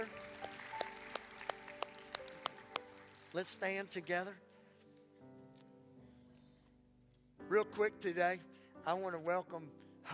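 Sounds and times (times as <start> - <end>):
people clapping: 0.0 - 4.1
speech: 3.3 - 4.5, 7.5 - 10.1.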